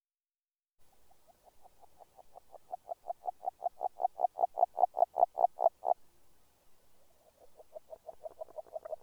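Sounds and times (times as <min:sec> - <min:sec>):
agile frog calling a rapid train of notes: 0:01.2 - 0:06.1, 0:07.0 - 0:09.0.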